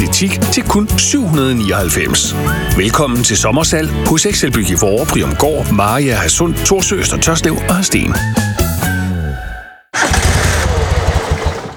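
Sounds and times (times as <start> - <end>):
speech: 0.0 - 8.9
lawnmower engine failing to start: 10.0 - 11.7.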